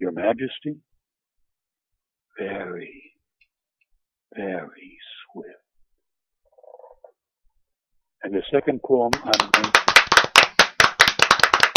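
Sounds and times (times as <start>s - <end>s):
speech: 0.1s - 1.0s, 2.4s - 3.0s, 4.3s - 5.6s, 8.2s - 9.8s
audience applauding a poem at a live reading: 9.1s - 11.7s.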